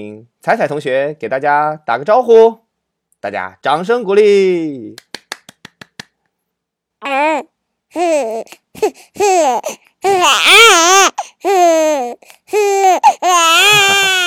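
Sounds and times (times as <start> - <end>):
speech: 0.0 - 2.6, 3.2 - 5.1, 7.0 - 14.2
baby crying: 7.0 - 14.2.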